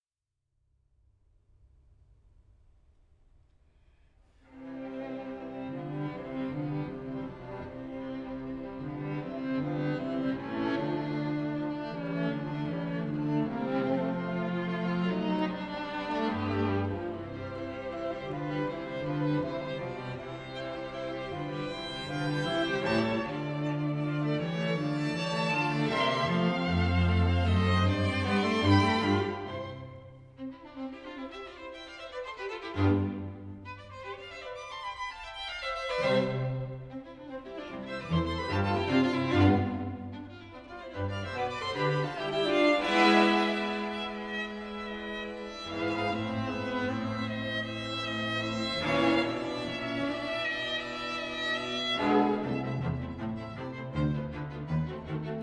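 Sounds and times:
string quintet: 0:04.4 - 0:55.4.

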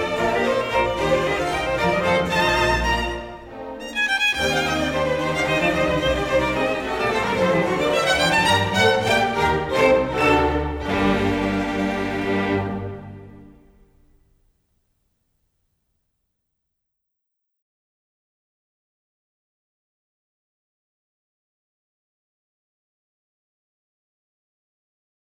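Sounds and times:
violin concerto in G minor: 0:00.0 - 0:13.6.

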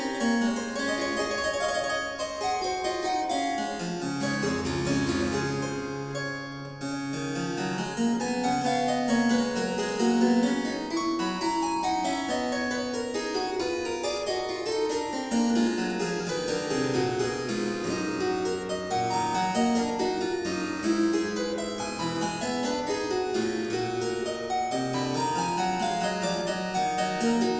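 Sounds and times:
harpsichord: 0:00.0 - 0:27.5.

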